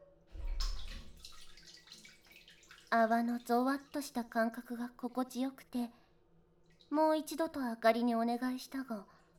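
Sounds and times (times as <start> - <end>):
hot water poured over head, splashing: 0.3 - 4.3
water trickling and dripping: 0.4 - 5.4, 6.6 - 7.4
speech: 2.9 - 6.0, 6.9 - 9.2.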